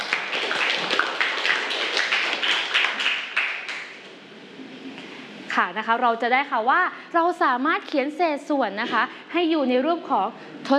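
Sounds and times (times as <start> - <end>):
classroom applause for a classmate: 0.0 - 4.0
speech: 5.6 - 10.7.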